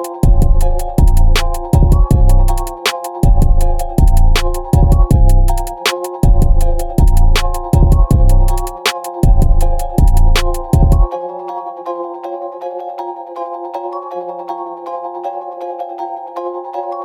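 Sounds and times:
instrumental type beat: 0:00.0 - 0:11.2.

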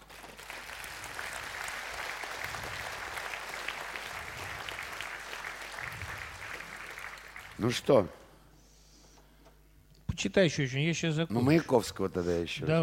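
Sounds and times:
audience clapping: 0:00.0 - 0:07.9
speech: 0:07.6 - 0:08.2, 0:10.2 - 0:12.8.

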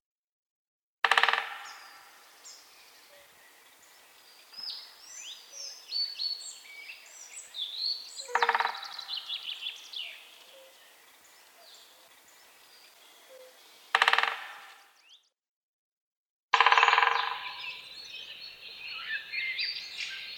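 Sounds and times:
great spotted woodpecker drumming: 0:01.1 - 0:05.9, 0:07.4 - 0:14.9, 0:16.5 - 0:19.6.

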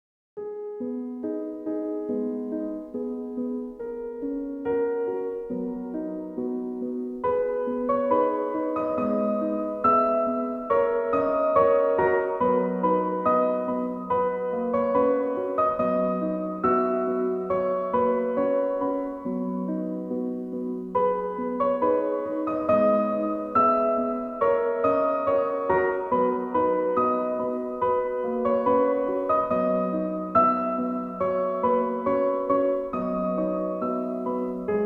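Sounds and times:
relaxing piano music: 0:00.4 - 0:34.8.

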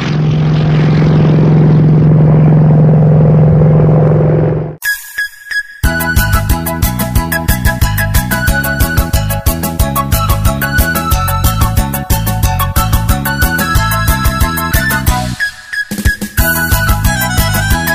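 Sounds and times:
propeller airplane droning: 0:00.0 - 0:04.8
upbeat rhythmic music: 0:04.8 - 0:17.9.

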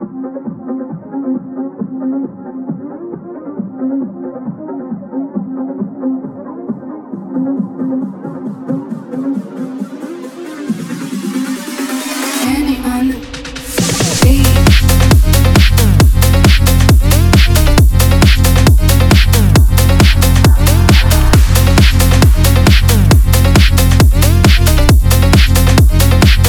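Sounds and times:
drift phonk music: 0:00.0 - 0:26.4.

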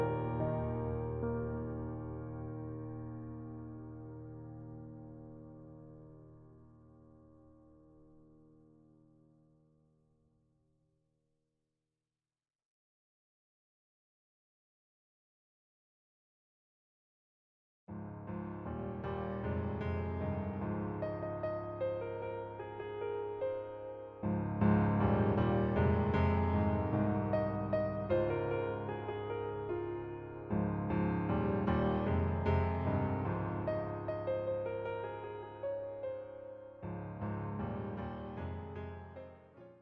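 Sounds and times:
piano cover: 0:00.0 - 0:07.3, 0:17.9 - 0:39.8.

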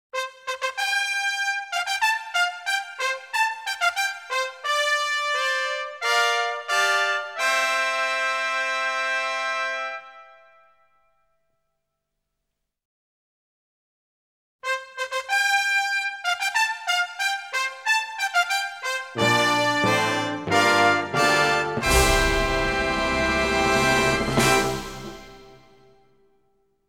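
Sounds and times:
classic fanfare: 0:00.2 - 0:10.3, 0:14.6 - 0:26.0.

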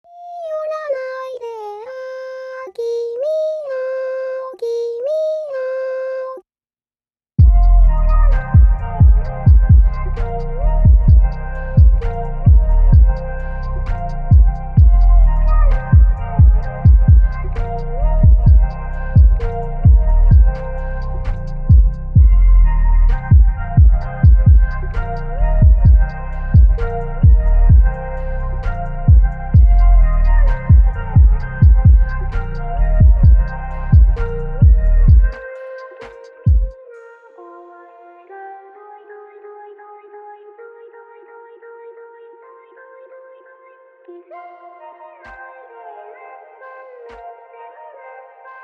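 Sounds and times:
anime phonk music: 0:07.4 - 0:40.9.

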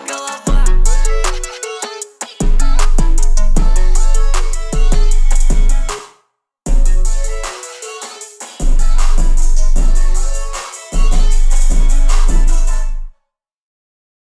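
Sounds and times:
23-26 Hz low bass tone: 0:00.5 - 0:01.5, 0:02.4 - 0:05.9, 0:06.7 - 0:07.5, 0:08.6 - 0:13.1.

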